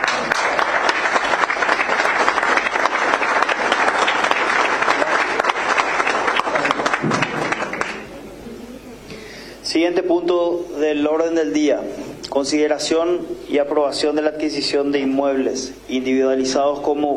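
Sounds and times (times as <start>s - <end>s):
large assembly applause: 0.0s - 8.1s
speech: 10.0s - 17.1s.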